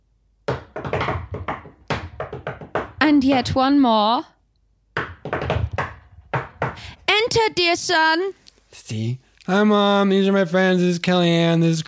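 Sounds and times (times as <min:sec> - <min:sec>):
rhythmic secret knock on a door: 0:00.4 - 0:03.7, 0:04.9 - 0:07.0
speech: 0:03.1 - 0:04.3, 0:07.3 - 0:11.8.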